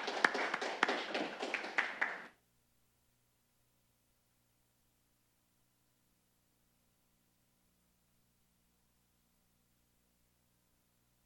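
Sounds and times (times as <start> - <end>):
audience applause: 0.0 - 2.3.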